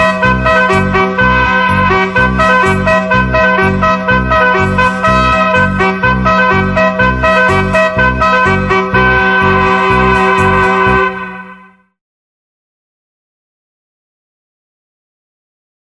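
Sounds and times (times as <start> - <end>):
drums: 0.0 - 11.1.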